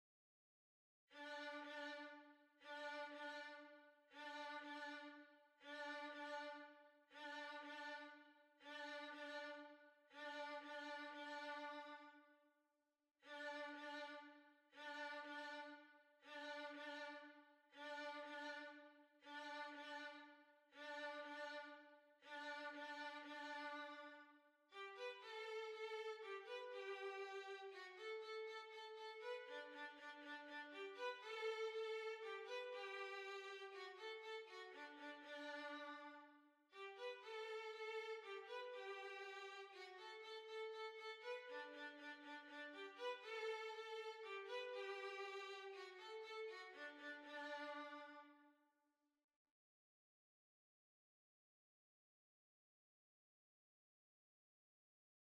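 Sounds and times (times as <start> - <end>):
violin waltz: 1.2 - 8.1, 8.7 - 12.0, 13.3 - 20.2, 20.8 - 24.1, 24.8 - 36.2, 36.8 - 48.3.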